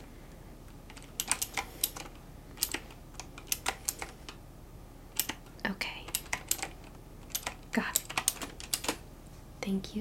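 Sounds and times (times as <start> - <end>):
computer keyboard typing: 0.9 - 4.4, 5.1 - 9.0
speech: 9.7 - 9.9.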